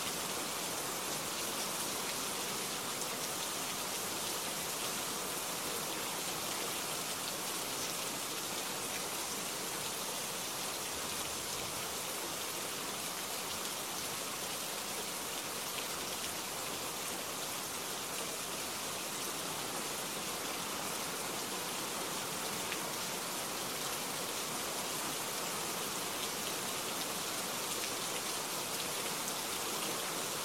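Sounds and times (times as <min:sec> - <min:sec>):
light rain: 0:00.0 - 0:30.4.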